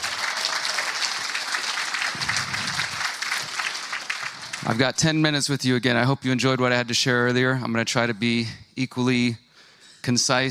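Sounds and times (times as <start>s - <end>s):
audience applause: 0.0s - 5.0s
speech: 4.6s - 9.4s, 10.0s - 10.4s.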